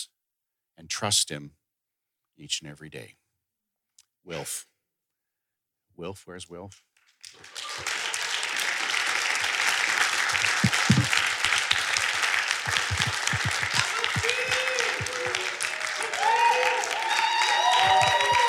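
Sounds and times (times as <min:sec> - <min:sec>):
speech: 0:00.8 - 0:01.6, 0:02.4 - 0:03.2, 0:04.2 - 0:04.7, 0:06.0 - 0:08.0
audience applause: 0:07.3 - 0:18.4
faint voices and cheers: 0:12.6 - 0:18.4.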